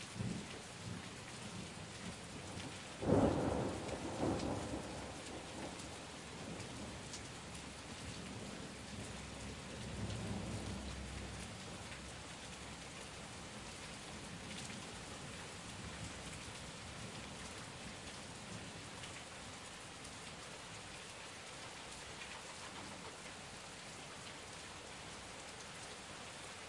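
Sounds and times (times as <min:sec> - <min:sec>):
heavy rain storm heard from under a balcony in daytime: 0:00.0 - 0:26.6
heavy thunder: 0:03.0 - 0:07.0.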